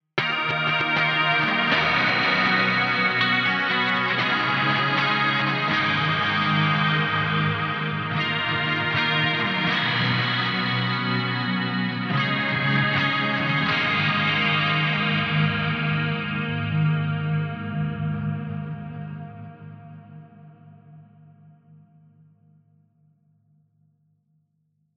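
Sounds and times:
riff: 0:00.2 - 0:19.5.

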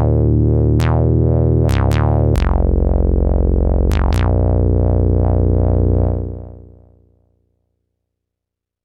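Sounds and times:
deep bass: 0:00.0 - 0:07.0.

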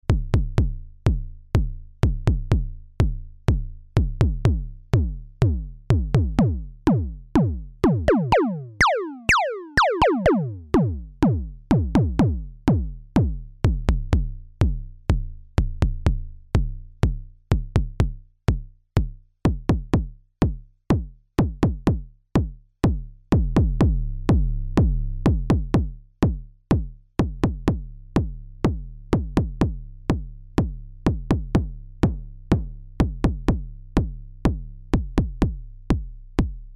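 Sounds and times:
MODOR DR2 noise bass drum: 0:00.0 - 0:36.7.

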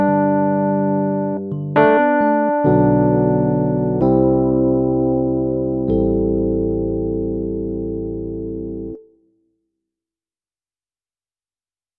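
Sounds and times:
electric piano: 0:00.0 - 0:09.2.

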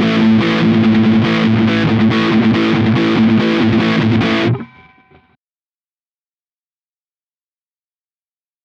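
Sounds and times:
Godin Radiator electric guitar burst high gain both pickups: 0:00.0 - 0:05.3.

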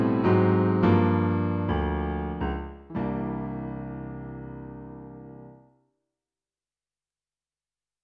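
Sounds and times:
piano: 0:00.0 - 0:05.8.

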